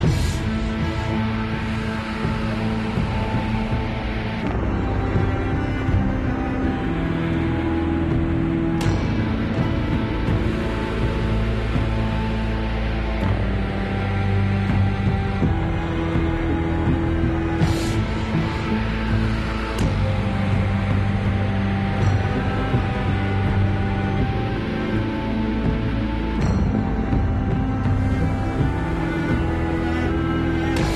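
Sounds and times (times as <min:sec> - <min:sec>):
tense emotional music loop: 0:00.0 - 0:30.9.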